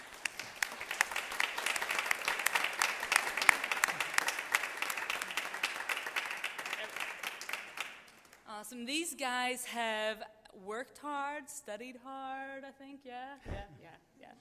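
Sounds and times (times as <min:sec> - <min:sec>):
audience clapping: 0:00.0 - 0:08.5
speech: 0:08.7 - 0:14.4.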